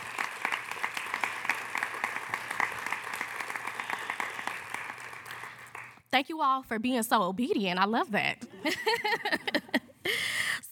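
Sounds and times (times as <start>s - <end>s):
round of applause: 0.0s - 6.0s
speech: 6.1s - 9.6s
laughter: 8.4s - 10.0s.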